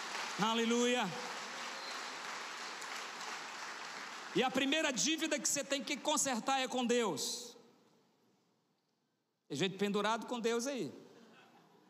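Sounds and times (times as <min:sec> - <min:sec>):
audience applauding: 0:00.0 - 0:04.8
speech: 0:00.4 - 0:01.4, 0:04.4 - 0:07.5, 0:09.5 - 0:11.1.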